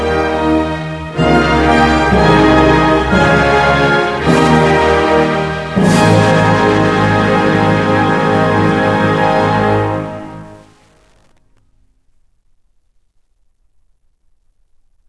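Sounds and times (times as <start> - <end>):
music: 0.0 - 11.0.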